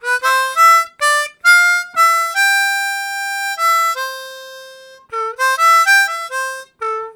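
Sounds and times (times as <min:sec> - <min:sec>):
harmonica riffs: 0:00.0 - 0:07.1.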